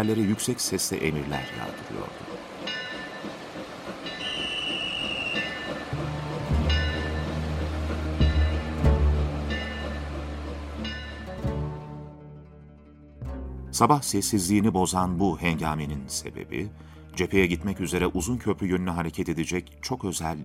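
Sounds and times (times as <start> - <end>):
speech: 0.0 - 2.2, 13.8 - 20.4
express train at a station platform getting ready to depart: 0.0 - 11.9
high squeal: 4.1 - 5.9.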